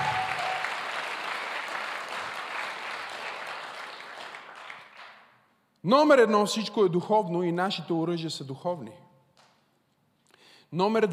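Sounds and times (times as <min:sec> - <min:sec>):
audience applause: 0:00.0 - 0:05.2
speech: 0:05.8 - 0:09.1, 0:10.7 - 0:11.1.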